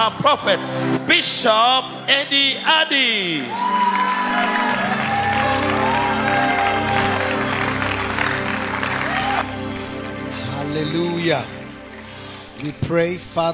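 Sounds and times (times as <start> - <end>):
speech: 0.0 - 5.0, 10.8 - 11.6, 12.6 - 13.5
church congregation applause welcoming its pastor: 0.0 - 12.6
cheers and whoops: 3.4 - 9.7.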